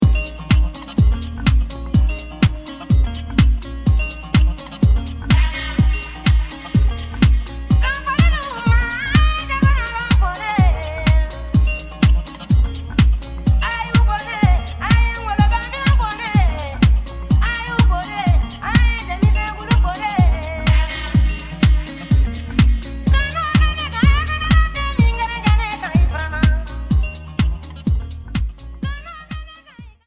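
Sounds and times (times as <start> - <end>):
vocals: 0.0 - 30.0.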